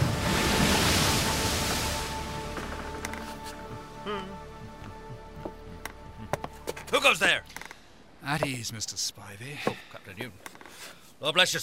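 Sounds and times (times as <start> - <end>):
waves slapping against a ship's bow: 0.0 - 3.0
speech: 4.1 - 4.4, 7.0 - 7.6, 8.2 - 11.6.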